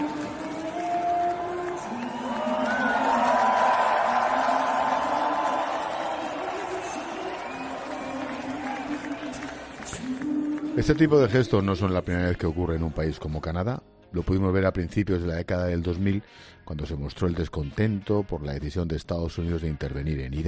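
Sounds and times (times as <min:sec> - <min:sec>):
hockey crowd singing national anthem: 0:00.0 - 0:10.8
speech: 0:10.8 - 0:20.4.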